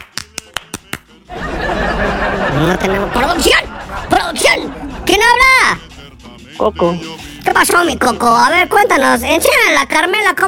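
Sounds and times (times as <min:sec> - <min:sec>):
applause on a Spanish-language show: 0:00.0 - 0:01.0
sharp evenly spaced claps: 0:00.0 - 0:01.2
laughter: 0:01.2 - 0:05.9
speech: 0:02.5 - 0:05.8, 0:06.6 - 0:10.4.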